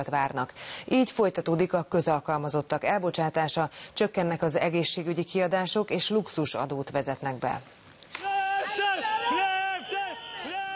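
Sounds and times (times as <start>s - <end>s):
speech: 0.0s - 8.3s
Greek public employees shouting in front of the Interior Ministry building: 8.2s - 10.7s.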